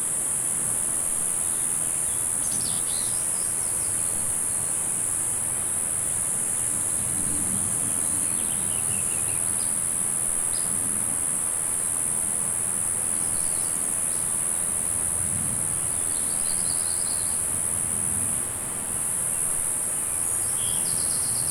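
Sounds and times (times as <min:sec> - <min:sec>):
cicada buzzing: 0:00.1 - 0:21.4.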